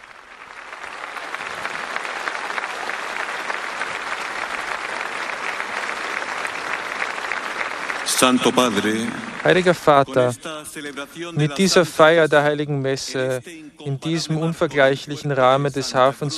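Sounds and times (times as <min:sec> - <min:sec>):
thunderous applause from a large crowd: 0:00.0 - 0:10.5
speech: 0:08.1 - 0:16.3.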